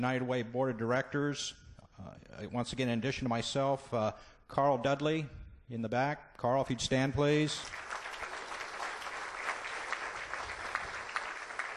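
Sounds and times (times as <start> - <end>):
speech: 0.0 - 7.9
audience applause: 7.6 - 11.7.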